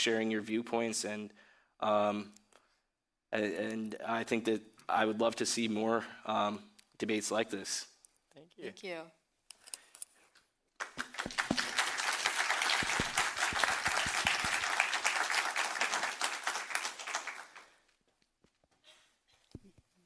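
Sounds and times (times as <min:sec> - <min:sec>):
speech: 0:00.0 - 0:02.4, 0:03.3 - 0:09.2
audience applause: 0:10.8 - 0:17.8.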